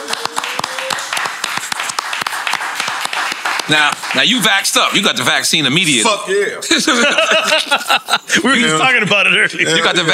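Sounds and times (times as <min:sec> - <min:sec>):
audience applause: 0:00.0 - 0:05.2
speech: 0:03.7 - 0:10.1
laughter: 0:06.6 - 0:10.1.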